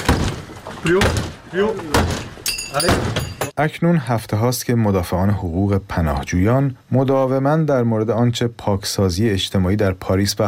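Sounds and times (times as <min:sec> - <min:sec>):
police breaking down a room door: 0:00.0 - 0:03.5
speech: 0:00.8 - 0:10.4.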